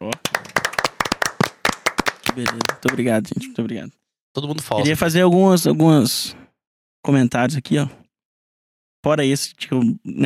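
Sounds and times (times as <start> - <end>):
applause sound effect: 0.0 - 3.2
speech: 2.4 - 6.4, 7.0 - 8.0, 9.0 - 10.2.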